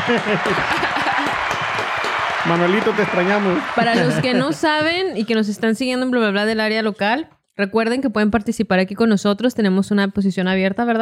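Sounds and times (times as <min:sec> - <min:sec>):
people talking and laughing: 0:00.0 - 0:01.7, 0:03.0 - 0:06.1
applause: 0:00.0 - 0:05.1
speech: 0:00.1 - 0:00.8, 0:02.4 - 0:10.9.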